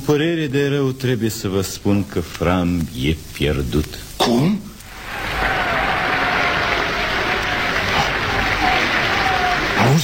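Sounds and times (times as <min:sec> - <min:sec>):
speech: 0:00.1 - 0:05.2
audience applause calling for a performer: 0:04.9 - 0:10.0.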